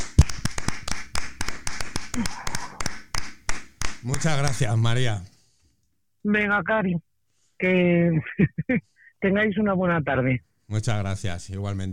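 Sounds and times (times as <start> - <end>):
single pair of hands clapping for a neighbour who is a nurse: 0.0 - 4.7
speech: 2.2 - 2.4, 4.0 - 5.3, 6.2 - 11.9.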